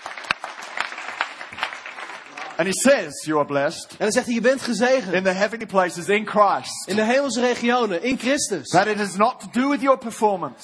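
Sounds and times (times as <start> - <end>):
audience applause: 0.0 - 2.8
speech: 2.6 - 10.6.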